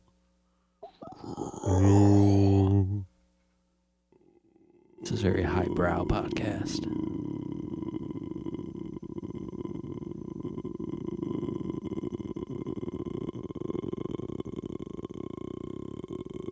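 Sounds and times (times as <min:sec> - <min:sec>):
voice imitating a long croak: 0:00.8 - 0:03.0, 0:04.2 - 0:16.5
speech: 0:05.2 - 0:07.2.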